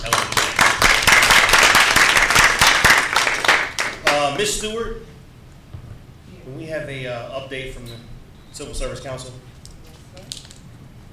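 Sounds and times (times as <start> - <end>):
group round of applause: 0.0 - 4.3
speech: 4.4 - 5.1, 6.5 - 9.5.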